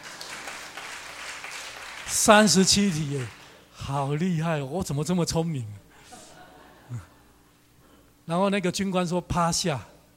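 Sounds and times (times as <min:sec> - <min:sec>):
applause: 0:00.0 - 0:03.6
speech: 0:02.1 - 0:05.8, 0:06.9 - 0:07.1, 0:08.3 - 0:09.9.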